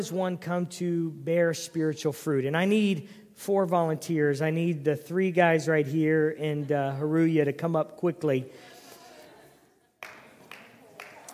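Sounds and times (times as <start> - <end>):
speech: 0.0 - 8.7
audience hand claps: 10.0 - 11.3.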